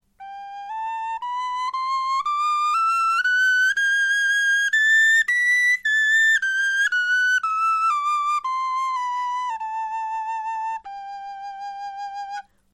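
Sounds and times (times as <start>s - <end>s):
musical scale: 0.2s - 12.4s.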